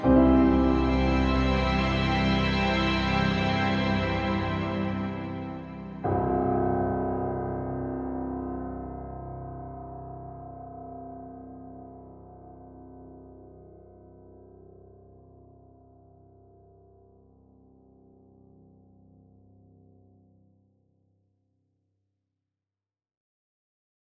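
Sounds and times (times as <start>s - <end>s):
music floating through space: 0.0s - 13.8s.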